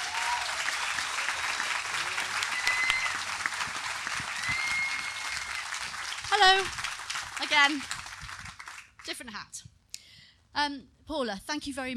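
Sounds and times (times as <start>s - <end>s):
festival audience applauding to welcome speakers: 0.0s - 9.0s
speech: 6.4s - 6.8s, 7.4s - 8.0s, 9.1s - 9.8s, 10.6s - 11.9s.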